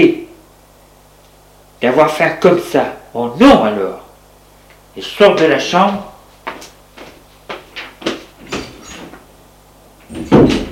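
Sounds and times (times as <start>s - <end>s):
speech: 1.8s - 4.0s, 5.0s - 6.1s
door slamming shut: 10.1s - 10.7s.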